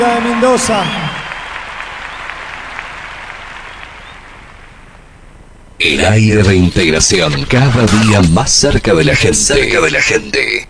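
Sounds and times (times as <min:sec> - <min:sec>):
speech: 0:00.0 - 0:01.0, 0:05.8 - 0:10.6
audience applause: 0:00.0 - 0:05.1.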